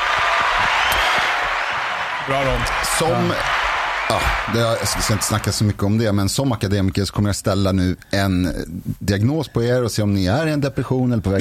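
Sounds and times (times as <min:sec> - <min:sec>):
applause: 0:00.0 - 0:05.6
speech: 0:02.3 - 0:11.3.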